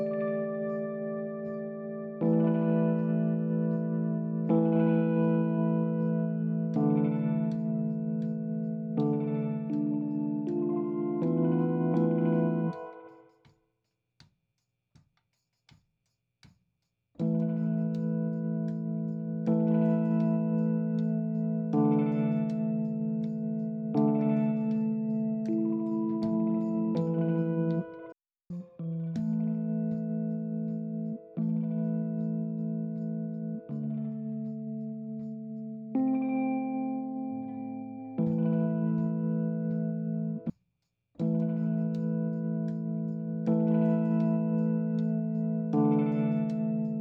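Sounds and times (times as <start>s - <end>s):
Rhodes electric piano: 0.0s - 13.2s, 17.2s - 40.5s, 41.2s - 46.9s.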